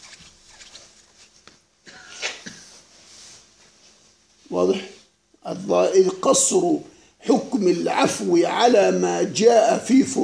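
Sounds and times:
person sneezing: 1.8 - 2.8
speech: 4.5 - 10.2.

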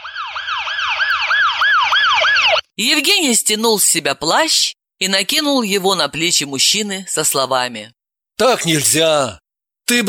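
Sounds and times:
ambulance siren approaching an accident scene: 0.0 - 2.6
speech: 2.8 - 10.0.

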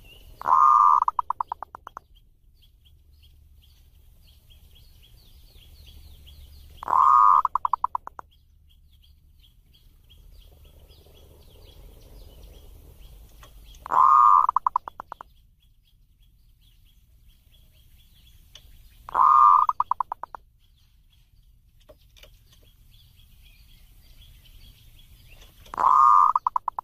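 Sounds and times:
zebra dove singing warbling coo phrases: 0.4 - 1.8, 6.8 - 8.1, 13.8 - 15.2, 19.1 - 20.3, 25.7 - 26.8.

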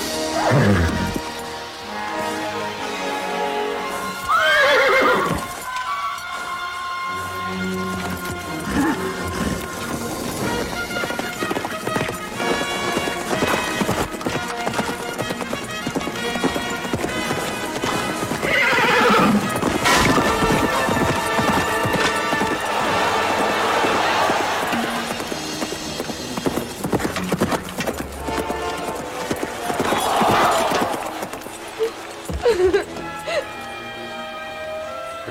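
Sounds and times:
horse whinnying: 0.1 - 1.3, 4.1 - 5.7, 8.1 - 25.3, 28.2 - 33.4
horse galloping hoofbeats in a tournament with rider mounted: 0.4 - 35.1.

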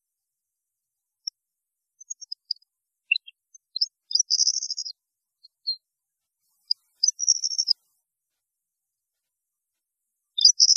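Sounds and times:
European goldfinch twittering song: 2.0 - 5.8, 6.6 - 7.8, 10.4 - 10.7.

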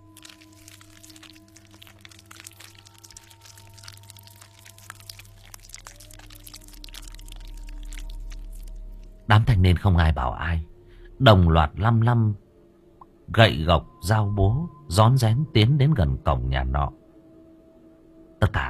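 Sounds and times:
wet smacking and squelching chewing noises: 0.0 - 9.2
steady low hum: 0.0 - 14.8
speech: 9.3 - 12.4, 13.3 - 17.0, 18.4 - 18.6.

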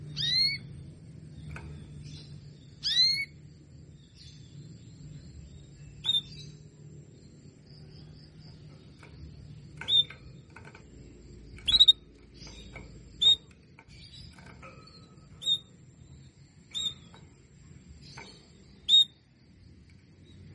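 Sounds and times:
Belgian canary calls: 0.1 - 0.7, 2.8 - 3.4, 11.6 - 12.1, 13.1 - 13.5, 18.9 - 19.2.

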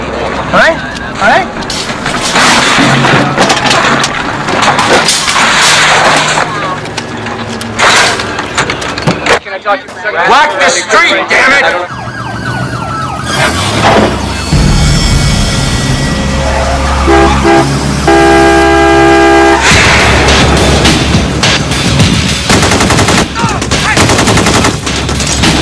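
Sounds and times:
street noise: 0.0 - 25.6
speech: 0.5 - 1.8, 9.7 - 12.0
sirens: 10.7 - 19.8
car horns: 15.8 - 19.8
gunshots from a shooter during the North Hollywood shootout on a city street: 19.6 - 25.6
people shouting: 23.2 - 24.1.

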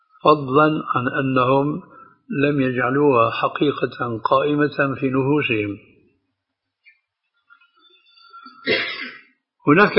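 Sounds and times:
speech: 0.2 - 5.9, 9.6 - 9.9
sneeze: 8.6 - 9.2.

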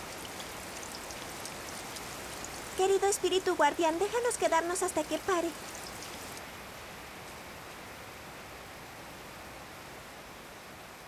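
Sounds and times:
heavy rain: 0.0 - 6.8
speech: 2.8 - 5.8.

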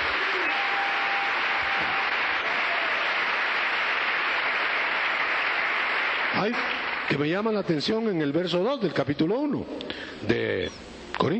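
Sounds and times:
church congregation clapping: 0.0 - 8.0
speech: 6.4 - 11.3.

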